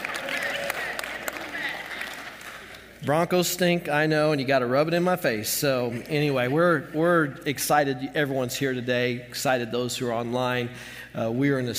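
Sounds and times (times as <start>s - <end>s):
audience applause: 0.0s - 3.0s
speech: 3.0s - 11.7s.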